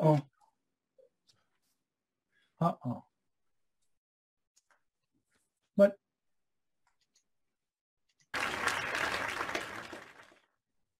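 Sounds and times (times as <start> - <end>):
speech: 0.0 - 0.3, 2.6 - 3.1, 5.8 - 6.0
short applause: 8.3 - 10.6.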